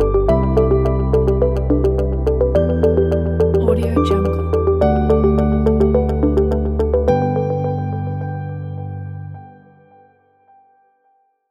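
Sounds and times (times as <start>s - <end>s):
corporate tech music: 0.0s - 8.6s.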